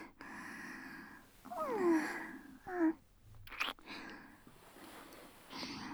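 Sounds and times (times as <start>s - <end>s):
sex sounds in cowgirl position: 1.1s - 5.8s
deep kissing under a futon: 1.4s - 5.6s.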